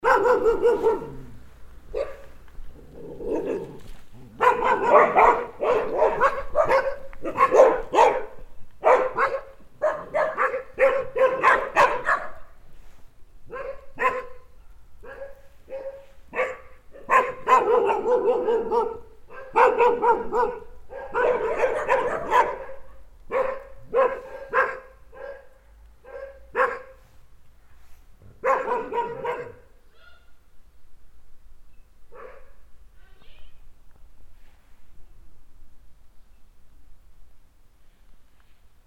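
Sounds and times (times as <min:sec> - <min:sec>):
several dogs barking excitedly: 0:00.0 - 0:01.3, 0:01.9 - 0:02.3, 0:03.3 - 0:12.5, 0:13.5 - 0:27.0, 0:28.4 - 0:29.8, 0:32.1 - 0:32.5
dog growling: 0:02.7 - 0:04.5.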